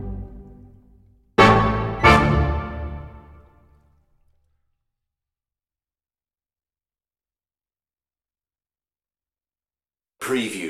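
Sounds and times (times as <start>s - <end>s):
lightly macabre orchestral music: 0.0s - 3.7s.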